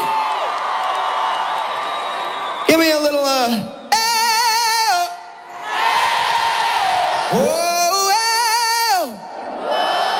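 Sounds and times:
festival crowd cheering: 0.0s - 10.1s
speech: 2.7s - 3.8s.

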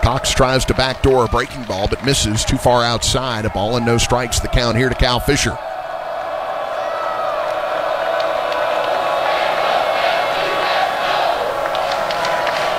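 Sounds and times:
speech: 0.0s - 5.7s
baseball crowd cheering: 0.0s - 12.7s
whoops: 5.6s - 12.7s.

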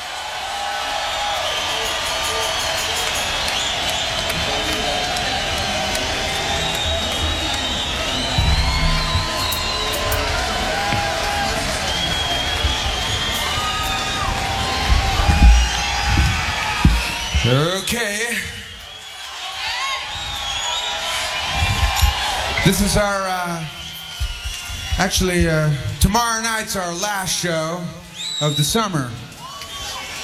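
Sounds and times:
concert audience cheering and clapping: 0.0s - 26.9s
shrill whistles and whoops from concert crowd: 0.5s - 25.6s, 28.1s - 28.7s, 29.3s - 30.2s
low thumps: 8.1s - 17.6s
speech: 22.7s - 23.7s, 25.0s - 29.2s.

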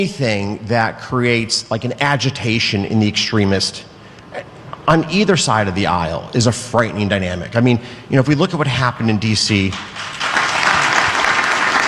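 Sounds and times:
speech: 0.0s - 10.0s
audience applause: 4.1s - 11.8s.

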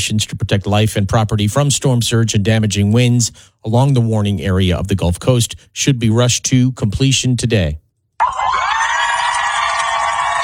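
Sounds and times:
speech: 0.0s - 8.4s
large crowd of family members cheering as USS Abraham Lincoln pulls into San Diego: 8.2s - 10.4s.

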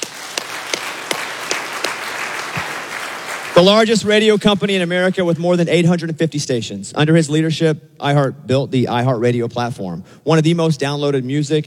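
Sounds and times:
crowd applauding: 0.0s - 4.3s
speech: 3.6s - 11.6s.

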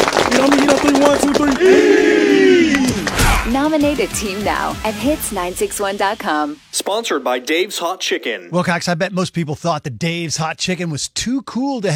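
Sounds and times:
football team clapping together: 0.0s - 4.5s
speech: 0.4s - 1.9s, 3.6s - 11.9s
loud group shout: 1.4s - 3.5s
voices chanting: 1.5s - 4.1s.

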